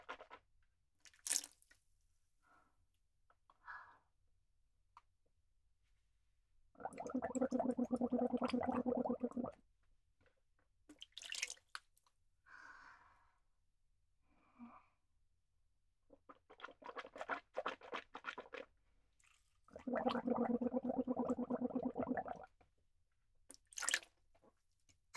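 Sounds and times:
person gargling water: 6.8s - 9.6s, 19.7s - 22.5s
water splashing and dripping: 10.9s - 11.7s, 23.7s - 24.1s.

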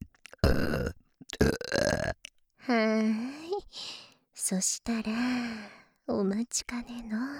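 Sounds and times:
throaty burps: 0.0s - 2.3s
speech: 4.5s - 7.3s.

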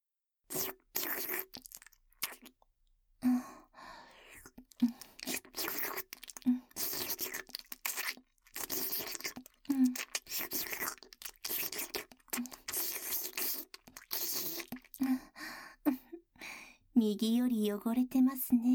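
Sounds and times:
ASMR licking and slurping at the left ear: 0.5s - 2.6s, 4.1s - 15.1s
speech: 17.0s - 18.7s.

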